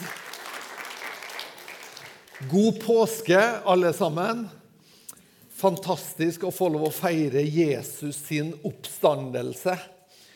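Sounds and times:
audience applause: 0:00.0 - 0:02.6
speech: 0:02.4 - 0:04.6, 0:05.6 - 0:10.0.

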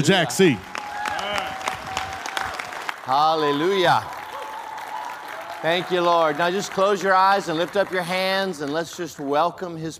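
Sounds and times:
speech: 0:00.0 - 0:00.8, 0:03.1 - 0:04.2, 0:05.6 - 0:09.9
audience applause: 0:00.0 - 0:09.1.

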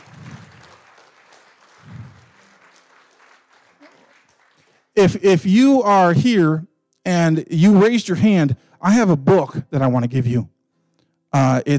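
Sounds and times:
audience applause: 0:00.0 - 0:04.9
speech: 0:05.0 - 0:10.5, 0:11.3 - 0:11.7.

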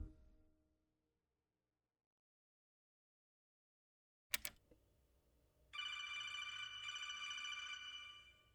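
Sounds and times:
sharp click: 0:04.3 - 0:04.7
telephone ring tone: 0:05.7 - 0:08.5.

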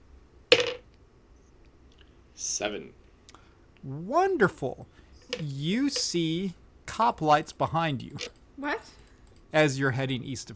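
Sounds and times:
two six-sided dice rolled in a tabletop role-playing game: 0:00.5 - 0:00.8, 0:05.3 - 0:06.1
speech: 0:02.4 - 0:03.0, 0:03.8 - 0:10.5.

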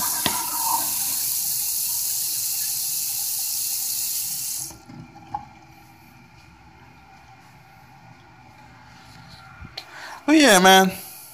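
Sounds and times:
tap water running while washing hands: 0:00.0 - 0:08.8
speech: 0:10.3 - 0:11.0.

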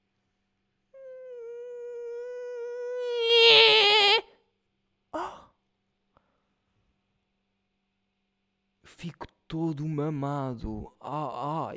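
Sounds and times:
vocal yelp: 0:01.0 - 0:04.3
voice imitating mosquito buzzing: 0:01.0 - 0:04.3
speech: 0:09.0 - 0:11.7.

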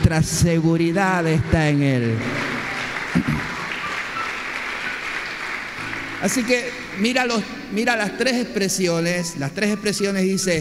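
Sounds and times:
crowd clapping: 0:00.0 - 0:08.1
speech: 0:00.1 - 0:02.5, 0:06.2 - 0:10.5.

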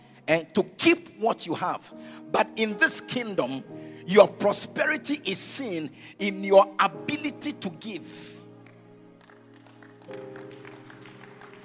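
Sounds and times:
speech: 0:00.3 - 0:08.4, 0:10.1 - 0:10.6
audience clapping: 0:08.6 - 0:11.6.

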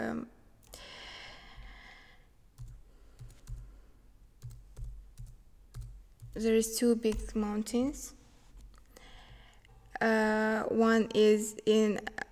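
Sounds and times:
typing on a computer keyboard: 0:02.6 - 0:03.7, 0:04.4 - 0:07.4
speech: 0:06.4 - 0:08.2, 0:10.0 - 0:12.2.

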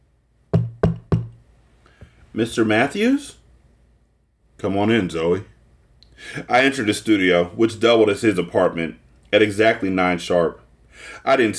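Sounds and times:
knocking on a door: 0:00.5 - 0:01.4
speech: 0:02.3 - 0:03.4, 0:04.6 - 0:05.5, 0:06.2 - 0:11.5.

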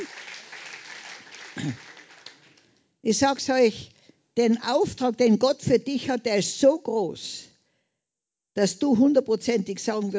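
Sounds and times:
audience clapping: 0:00.0 - 0:02.8
speech: 0:01.6 - 0:01.9, 0:03.0 - 0:07.5, 0:08.6 - 0:10.1.

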